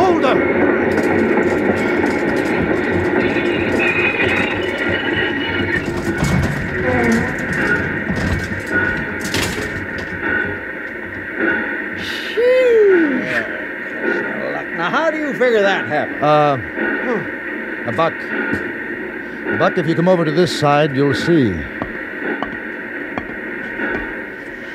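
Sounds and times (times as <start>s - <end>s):
train braking heavily on the track: 0.0s - 24.7s
train clanks and scrapes: 0.8s - 11.7s
speech: 16.0s - 16.8s, 17.9s - 18.7s, 19.6s - 21.8s.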